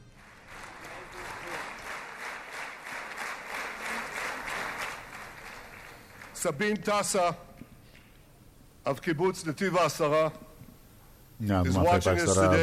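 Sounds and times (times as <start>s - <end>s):
audience applause: 0.0s - 6.6s
speech: 6.4s - 7.5s, 8.8s - 10.4s, 11.4s - 12.6s.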